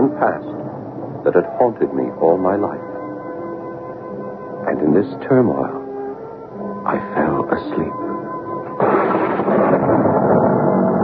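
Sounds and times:
speech: 0.1 - 2.9, 4.7 - 5.8, 6.9 - 8.1
huge thunderclap: 8.7 - 11.0.

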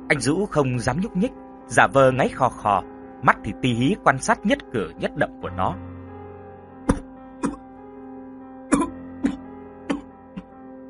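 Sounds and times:
speech: 0.1 - 5.9
violent coughing fit: 8.7 - 10.1.

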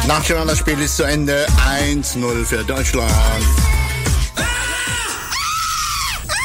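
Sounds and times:
speech: 0.2 - 3.7
screams of joy after a football win: 4.4 - 6.4.

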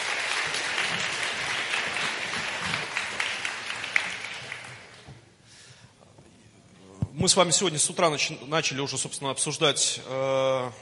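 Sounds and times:
audience applause in a hall greeting two guests: 0.0 - 5.1
speech: 7.2 - 10.8.

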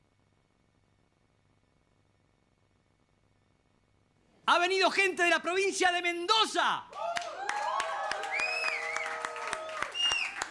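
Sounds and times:
speech: 4.5 - 7.0
audience clapping rhythmically: 6.9 - 10.4
people cheering and calling out: 6.9 - 10.4.

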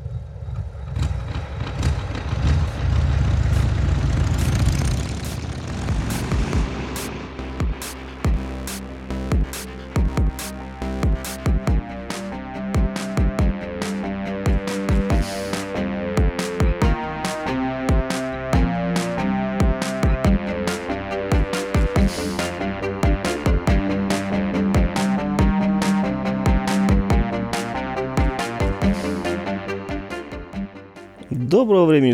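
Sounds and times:
racing motorcycle engine roaring past on the Isle of Man over a loudspeaker: 0.0 - 30.5
rhythmic music with sharp, regular beats: 5.2 - 31.0
speech: 31.6 - 32.1.

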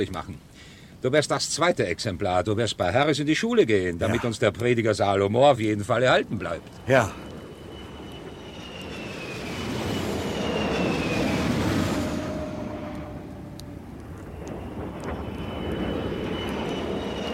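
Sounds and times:
speech: 0.0 - 7.3
aircraft flying overhead: 4.0 - 17.3.

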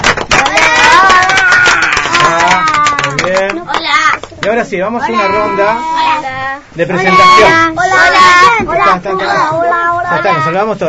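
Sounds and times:
studio audience applause: 0.0 - 3.6
speech: 4.5 - 10.8.

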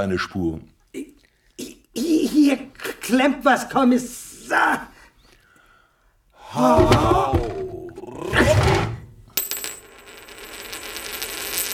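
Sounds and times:
speech: 0.0 - 0.8, 2.4 - 4.9, 6.5 - 7.3
ancient coin with Greek writing dropping and clinking: 9.4 - 11.7.

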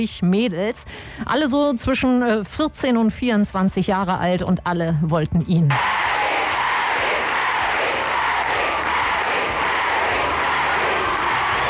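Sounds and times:
speech: 0.0 - 6.1
teenage fans screaming at concert: 5.7 - 11.6.

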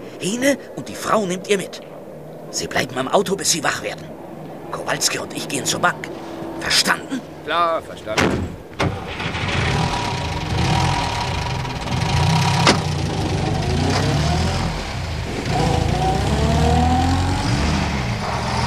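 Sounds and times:
speech: 0.2 - 1.9, 2.5 - 9.0
car engine revving as the vehicle pulls away: 5.2 - 18.6.

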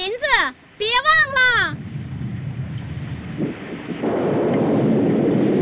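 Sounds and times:
mountain flash flood rushing down: 0.2 - 5.6.

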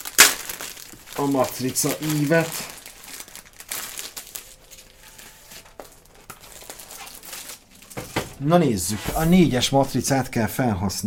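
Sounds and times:
paper building instruction booklet crinkling and rustling as it is unfolded: 0.0 - 9.7
speech: 1.2 - 2.7, 8.4 - 11.0.

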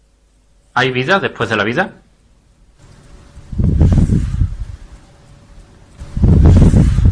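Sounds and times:
speech: 0.8 - 2.0
gusty rushing wind noise in a psychophony recording: 2.8 - 7.0.

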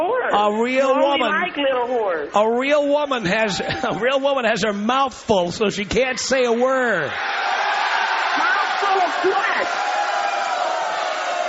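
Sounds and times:
speech: 0.4 - 7.5, 9.1 - 9.9
group of men yelling in background: 7.1 - 11.4.

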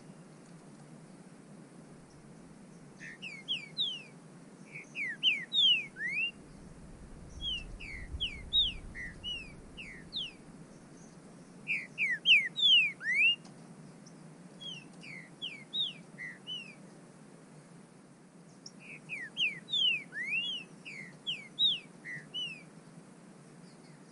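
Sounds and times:
bird whistling calls: 3.0 - 4.1, 4.7 - 11.1, 11.7 - 13.5, 14.6 - 16.8, 18.8 - 22.7.

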